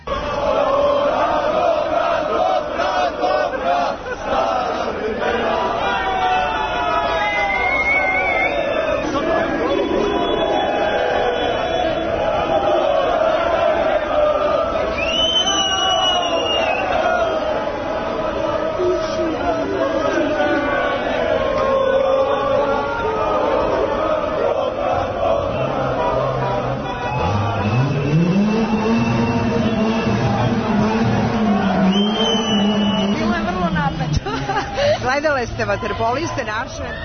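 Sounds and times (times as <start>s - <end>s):
street crowd celebrating Olympic water polo gold: 0.0s - 37.0s
laughter: 1.5s - 7.2s, 16.4s - 37.0s
high whistle: 7.2s - 12.1s, 14.9s - 17.3s, 27.0s - 30.8s, 31.6s - 33.3s
speech: 36.1s - 37.0s.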